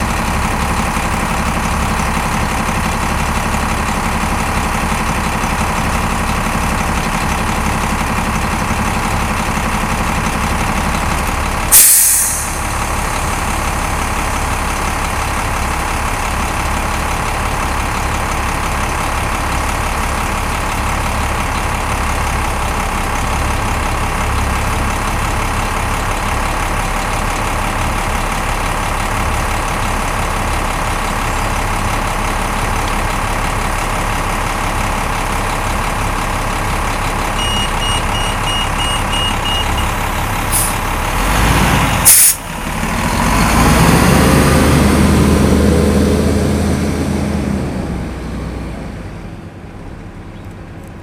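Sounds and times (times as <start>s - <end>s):
bus engine idling: 0.0s - 51.0s
bus brakes: 11.6s - 14.5s, 37.4s - 41.0s, 41.7s - 42.5s.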